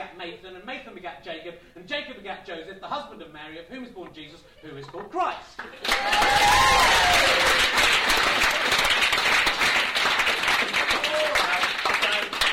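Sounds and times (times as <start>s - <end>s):
speech: 0.2s - 7.9s
audience applause: 5.6s - 12.5s.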